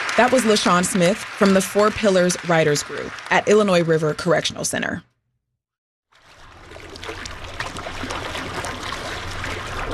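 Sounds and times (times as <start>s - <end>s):
speech: 0.2s - 5.1s
water of Lake Michigan washing and rushing: 6.2s - 9.9s.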